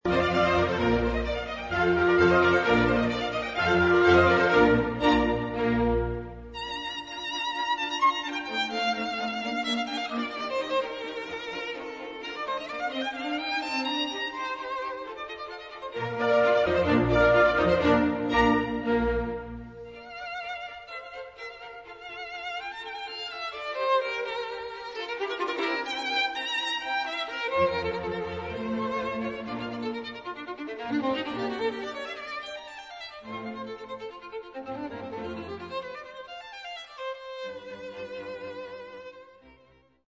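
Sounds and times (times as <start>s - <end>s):
violin: 0.0s - 40.0s.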